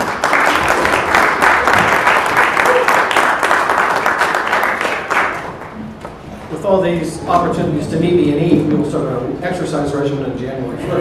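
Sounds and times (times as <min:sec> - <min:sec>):
church congregation applause welcoming the pastor at a Second Sunday of Advent service: 0:00.0 - 0:05.8
speech: 0:06.7 - 0:10.9.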